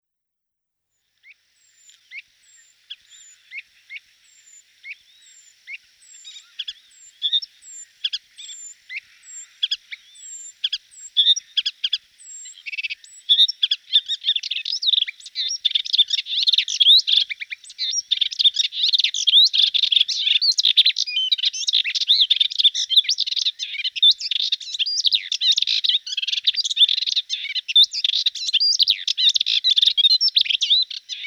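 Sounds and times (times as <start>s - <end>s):
Hippolais warbler singing: 0.9s - 31.2s.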